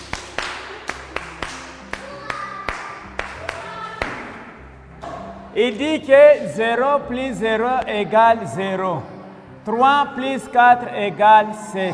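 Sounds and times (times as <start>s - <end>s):
hands clapping: 0.0s - 4.4s
speech: 5.6s - 11.9s.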